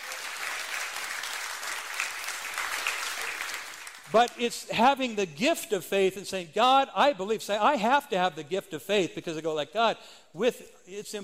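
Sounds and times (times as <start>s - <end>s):
crowd applause: 0.0s - 4.3s
speech: 4.1s - 11.2s.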